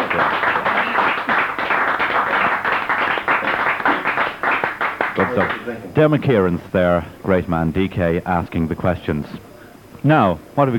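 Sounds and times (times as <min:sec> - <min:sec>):
crowd applause: 0:00.0 - 0:05.8
speech: 0:05.4 - 0:10.7.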